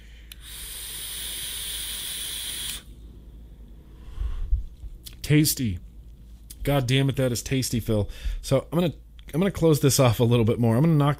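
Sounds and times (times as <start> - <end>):
e-cigarette vapor hissing: 0.3 - 2.9
soft exhaling: 3.8 - 4.7
speech: 5.3 - 5.9, 6.6 - 11.1.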